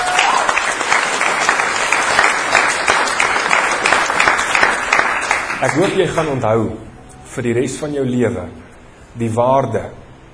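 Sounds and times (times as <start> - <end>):
crowd applause: 0.0 - 6.3
speech: 5.6 - 10.0.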